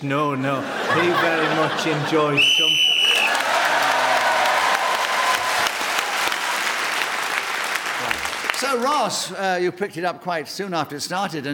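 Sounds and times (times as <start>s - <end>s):
speech: 0.0s - 2.9s, 8.7s - 11.5s
laughter: 0.4s - 4.6s
live audience applause: 2.7s - 9.4s.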